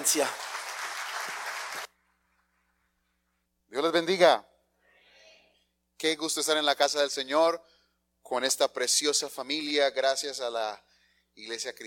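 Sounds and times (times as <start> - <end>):
speech: 0.0 - 0.5, 3.7 - 4.5, 6.0 - 11.8
church congregation applause welcoming a visiting pastor to the pulpit: 0.0 - 2.0.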